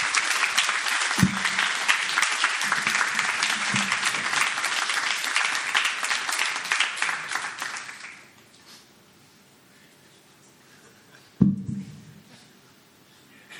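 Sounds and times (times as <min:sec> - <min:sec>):
audience applause: 0:00.0 - 0:08.3
low thumps: 0:11.4 - 0:12.1.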